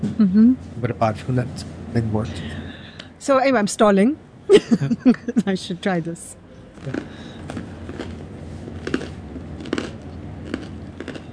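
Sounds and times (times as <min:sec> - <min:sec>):
speech: 0:00.1 - 0:02.6, 0:03.2 - 0:07.6
laughter: 0:04.5 - 0:05.6
biting into crunchy bread: 0:06.8 - 0:11.3.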